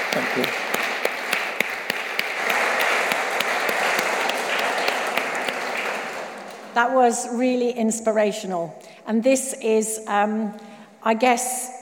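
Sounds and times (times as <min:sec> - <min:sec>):
crowd applauding: 0:00.0 - 0:06.8
speech: 0:00.2 - 0:00.7, 0:06.8 - 0:11.8.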